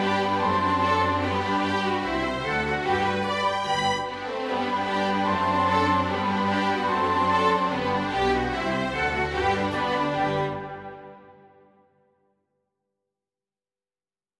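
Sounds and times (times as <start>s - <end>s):
allegro gavotte for ballet pantomime: 0.0s - 11.3s.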